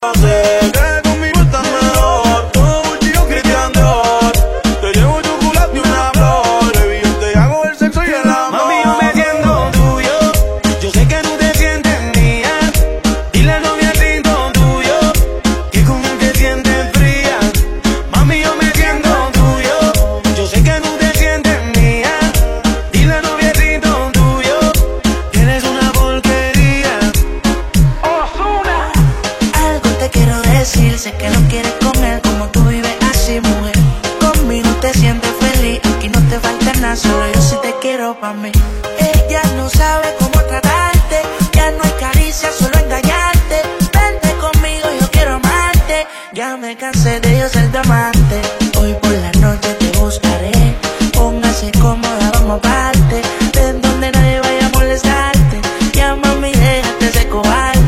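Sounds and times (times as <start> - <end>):
reggaeton music: 0.0 - 57.8.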